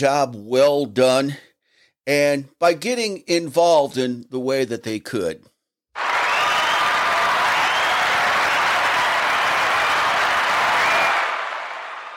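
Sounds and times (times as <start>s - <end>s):
speech: 0.0s - 1.5s, 2.1s - 5.5s
applause sound effect with whoops from podcast soundboard: 6.0s - 12.1s.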